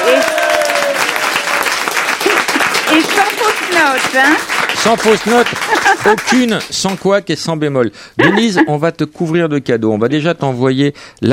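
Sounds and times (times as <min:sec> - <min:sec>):
audience applause: 0:00.0 - 0:07.1
laughter: 0:02.2 - 0:03.0, 0:05.3 - 0:06.7, 0:08.2 - 0:08.8
speech: 0:03.9 - 0:11.3.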